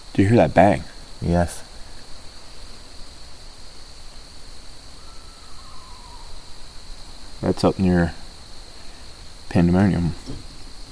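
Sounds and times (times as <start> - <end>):
speech: 0.2 - 1.7, 7.4 - 8.2, 9.5 - 10.5
owl hooting: 4.9 - 6.8.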